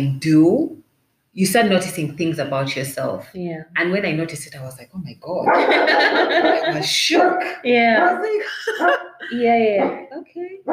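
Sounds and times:
speech: 0.0 - 0.8, 1.4 - 10.7
dog barking: 5.5 - 6.4, 7.1 - 8.2, 9.8 - 10.1
laughter: 5.5 - 7.1, 8.2 - 9.5.

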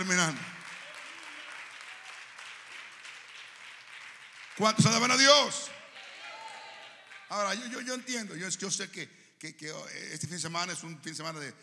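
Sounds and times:
speech: 0.0 - 0.6, 4.6 - 5.8, 7.3 - 11.6
audience applause: 0.0 - 7.8.

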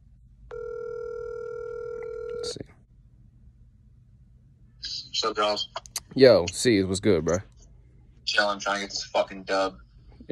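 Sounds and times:
outgoing phone call ringing tone: 0.5 - 2.6
speech: 2.4 - 2.8, 5.2 - 7.5, 8.3 - 10.2.

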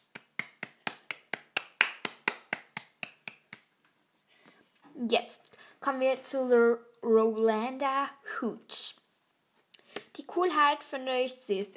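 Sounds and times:
audience applause: 0.2 - 3.5
speech: 5.0 - 9.0, 10.3 - 11.7.

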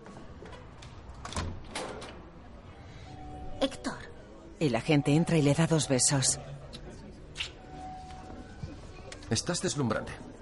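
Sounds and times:
house door opening: 0.4 - 2.4
speech: 3.6 - 4.0, 4.6 - 6.6, 9.3 - 10.3.

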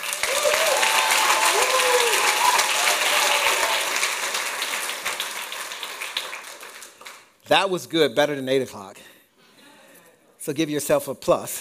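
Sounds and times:
audience clapping hands: 0.0 - 7.4
speech: 7.5 - 9.1, 10.4 - 11.5.

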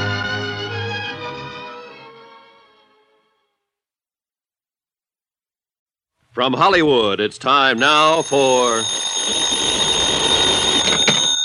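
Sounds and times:
speech: 6.4 - 9.6
telephone bell ringing: 7.7 - 11.4.

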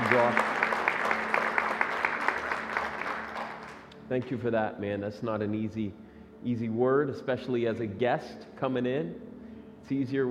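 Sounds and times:
audience applauding: 0.0 - 3.9
speech: 4.1 - 10.2.

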